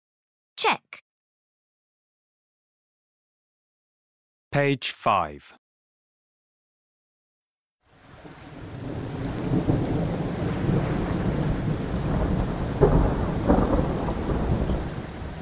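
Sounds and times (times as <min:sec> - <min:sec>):
speech: 0:00.6 - 0:01.0, 0:04.5 - 0:05.6
heavy rain: 0:07.9 - 0:15.4
thunder rumbling: 0:08.2 - 0:15.4.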